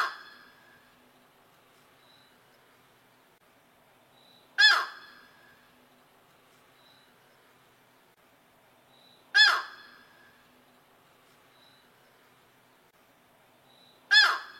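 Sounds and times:
yellow-crowned night heron giving harsh squawks: 4.6 - 5.2, 9.4 - 10.0, 14.1 - 14.5.

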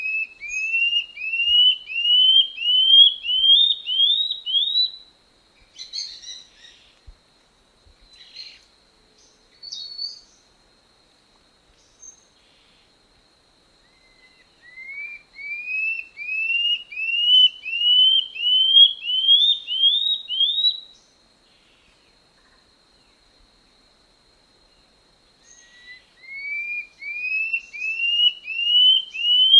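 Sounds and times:
common scale-backed antbird song of upslurred whistles: 0.0 - 5.0, 9.6 - 10.4, 13.9 - 21.1, 25.4 - 29.5.

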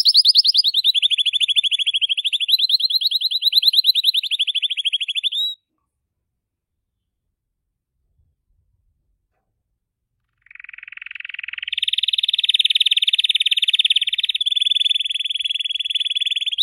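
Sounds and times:
blue Belgian canary singing: 0.0 - 5.6, 10.4 - 16.6.

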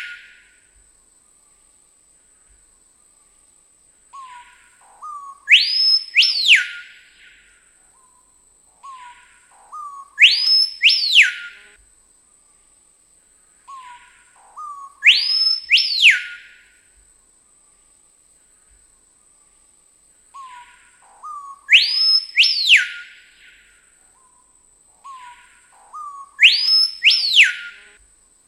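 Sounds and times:
screaming piha song of loud piercing whistles: 0.0 - 0.6, 4.2 - 11.8, 13.7 - 16.8, 20.4 - 28.0.

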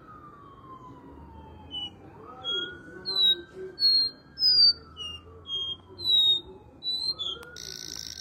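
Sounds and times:
copper seedeater whistling: 1.7 - 8.2.

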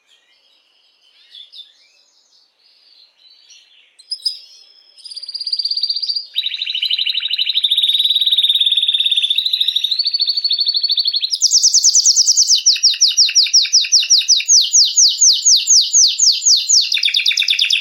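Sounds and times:
Belgian mosaic canary singing: 3.5 - 17.7.

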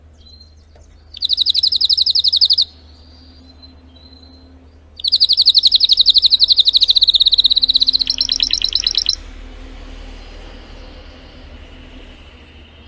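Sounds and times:
low hum: 0.0 - 12.8
Spanish Timbrado canary singing trills: 1.1 - 4.2, 5.0 - 9.2.

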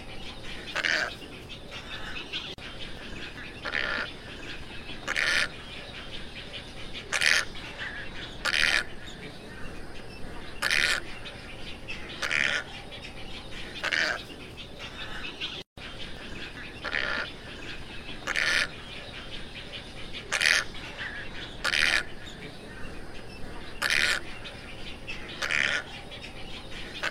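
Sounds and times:
Tricolored heron croaking calls: 0.7 - 5.8, 6.9 - 9.3, 10.4 - 11.3, 11.9 - 12.9, 13.7 - 15.4, 16.1 - 19.5, 20.2 - 24.5, 25.1 - 26.1, 27.0 - 27.1.

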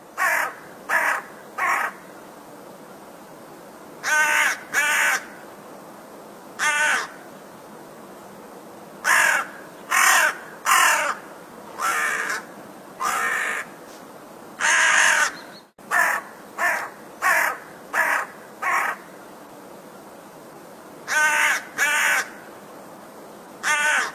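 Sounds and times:
crow cawing: 0.2 - 2.0, 4.0 - 5.4, 6.6 - 7.2, 9.0 - 11.2, 11.8 - 13.8, 14.6 - 19.1, 21.1 - 22.4, 23.6 - 24.1.

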